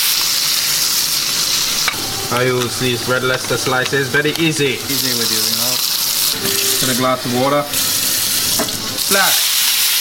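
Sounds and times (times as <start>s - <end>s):
burger sizzling in a frying pan: 0.0s - 9.9s
speech: 2.3s - 5.6s, 6.4s - 7.9s, 9.1s - 9.4s.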